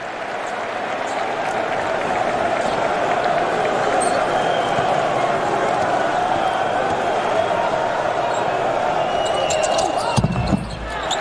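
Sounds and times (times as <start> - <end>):
crowd roar: 0.0 - 11.1
basketball bouncing during free throws in a professional game: 10.2 - 11.1.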